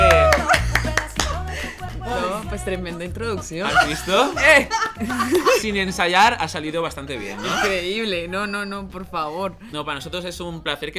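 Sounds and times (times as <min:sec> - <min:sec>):
hand claps: 0:00.0 - 0:01.5
laughter: 0:00.0 - 0:02.5, 0:03.6 - 0:05.8, 0:07.0 - 0:08.1
speech: 0:02.6 - 0:10.9.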